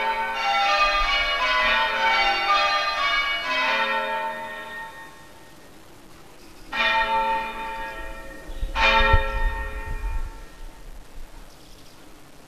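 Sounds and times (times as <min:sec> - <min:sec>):
church bells ringing: 0:00.0 - 0:05.7, 0:06.7 - 0:10.8.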